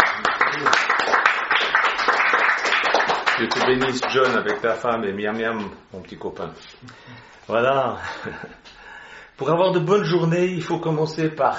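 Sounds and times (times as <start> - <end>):
audience applause: 0.0 - 4.7
speech: 3.4 - 8.7, 9.4 - 11.5.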